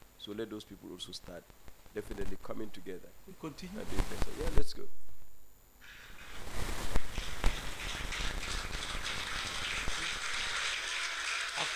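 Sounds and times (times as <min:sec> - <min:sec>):
speech: 0:00.2 - 0:05.1
crowd applause and jubilation: 0:07.1 - 0:11.7.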